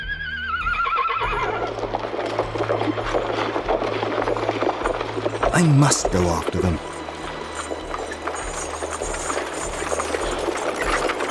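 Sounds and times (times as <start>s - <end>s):
horse whinnying: 0.0s - 2.0s
horse-drawn carriage hooves clip-clopping: 0.2s - 11.2s
moving carriage rumbling: 1.6s - 11.2s
speech: 5.6s - 6.9s.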